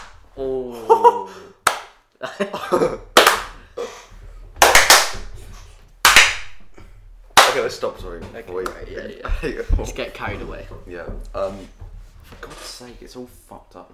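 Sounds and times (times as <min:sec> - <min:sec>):
hand claps for recording sync: 0:01.6 - 0:02.0, 0:03.2 - 0:03.6, 0:04.6 - 0:06.8, 0:07.4 - 0:07.8
speech: 0:02.3 - 0:03.1, 0:07.7 - 0:13.9.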